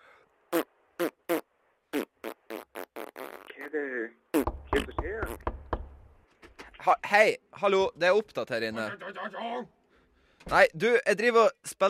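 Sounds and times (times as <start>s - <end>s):
short punchy fart sounds: 0.5s - 3.7s, 4.3s - 5.5s
speech: 6.9s - 9.8s, 10.4s - 11.8s.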